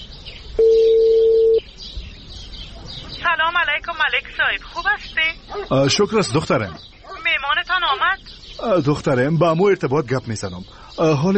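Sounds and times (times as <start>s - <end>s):
faint noise: 0.0s - 11.3s
electronic phone tone as a mobile number is dialed: 0.6s - 1.6s
speech: 3.8s - 7.0s, 7.9s - 11.3s.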